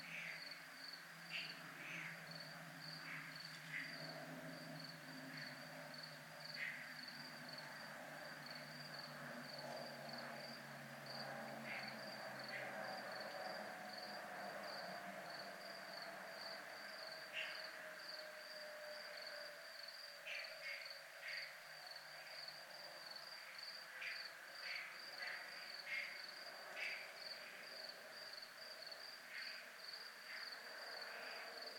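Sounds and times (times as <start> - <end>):
crickets trilling: 0.0 - 31.7
insect chirps: 0.0 - 31.7.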